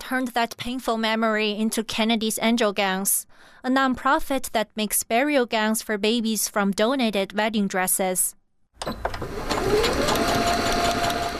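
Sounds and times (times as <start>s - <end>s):
speech: 0.1s - 10.6s
sewing machine running in a Virginia Beach home: 9.0s - 11.3s.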